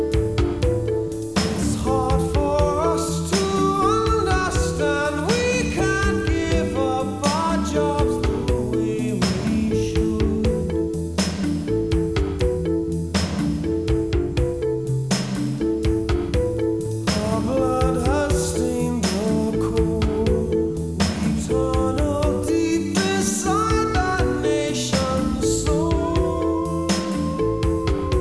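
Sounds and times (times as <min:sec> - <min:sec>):
rock music: 0:00.0 - 0:28.1.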